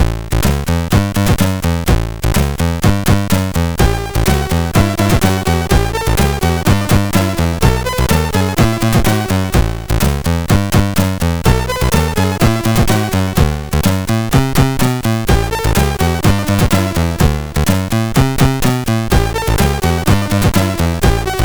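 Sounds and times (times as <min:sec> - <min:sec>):
rock and roll chiptune music on MOS6581R4 chip: 0:00.0 - 0:21.4.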